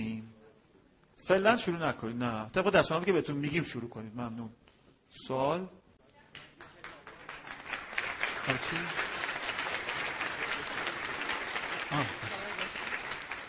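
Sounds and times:
speech: 1.3 - 5.8, 8.4 - 9.1, 11.9 - 12.4
crowd applause: 6.6 - 13.4.

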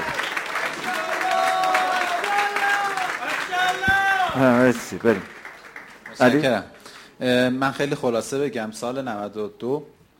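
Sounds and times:
sustained audience applause: 0.0 - 6.7
speech: 4.4 - 5.4, 6.2 - 10.0.

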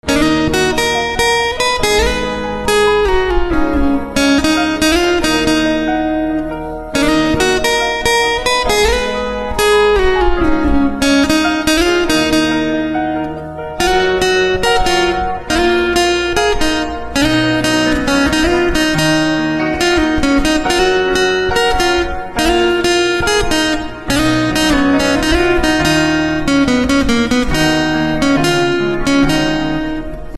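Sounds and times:
guitar instrumental ringtone: 0.0 - 30.3.

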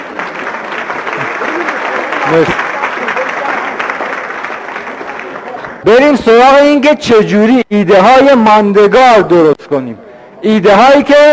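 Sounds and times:
audience applauding: 0.0 - 5.8
speech: 2.3 - 2.7, 5.8 - 11.3.

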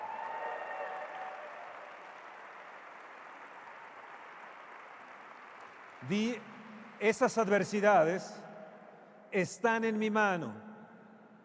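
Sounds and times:
audience applause: 0.0 - 7.8
speech: 6.0 - 8.4, 9.3 - 10.7.

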